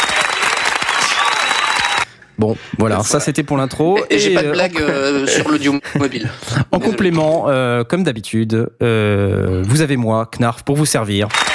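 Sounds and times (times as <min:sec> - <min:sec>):
applause: 0:00.0 - 0:02.1, 0:11.3 - 0:11.5
speech: 0:02.4 - 0:11.5
laughter: 0:03.5 - 0:07.4.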